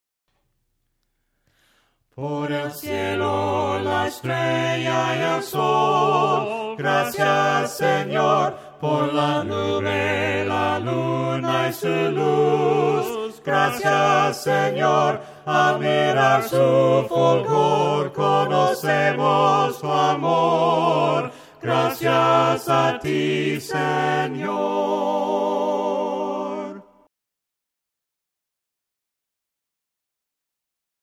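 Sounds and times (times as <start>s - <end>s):
voices singing hymns a cappella: 2.1s - 27.1s.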